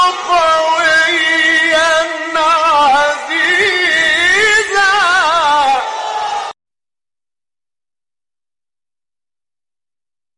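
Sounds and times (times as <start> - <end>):
Quranic verse recitation: 0.0 - 6.0.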